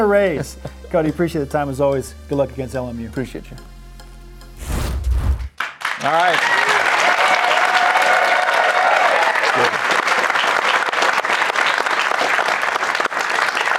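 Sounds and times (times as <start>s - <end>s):
speech: 0.0s - 3.7s, 6.0s - 6.7s
crowd applause: 5.6s - 13.7s.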